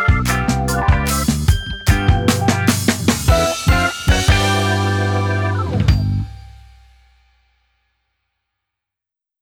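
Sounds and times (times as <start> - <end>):
funk music: 0.0 - 6.9.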